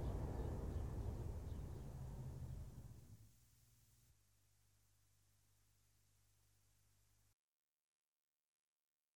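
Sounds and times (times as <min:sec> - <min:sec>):
train passing: 0:00.0 - 0:03.0.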